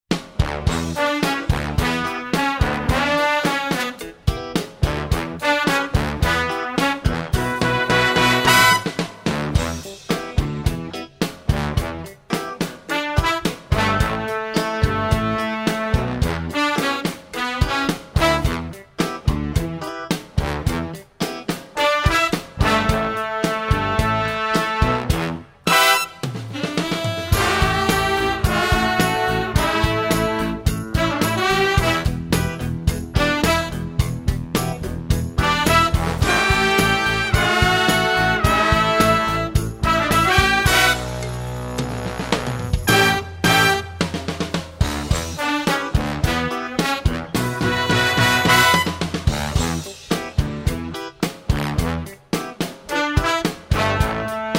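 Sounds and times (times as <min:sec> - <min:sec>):
accompaniment music: 0:00.1 - 0:54.5.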